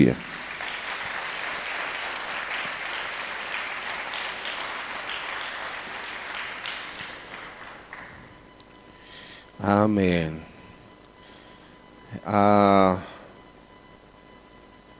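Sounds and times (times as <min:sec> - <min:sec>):
speech: 0:00.0 - 0:00.3, 0:09.6 - 0:10.5, 0:12.2 - 0:13.1
audience applause: 0:00.0 - 0:08.3.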